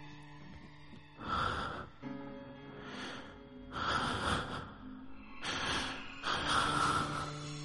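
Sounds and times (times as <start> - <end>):
voice imitating a man's heavy breathing: 1.2 - 2.0, 2.8 - 7.6.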